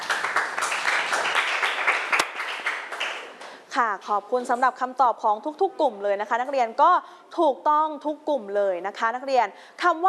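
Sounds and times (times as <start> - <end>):
students clapping: 0.0 - 3.6
speech: 3.8 - 10.0.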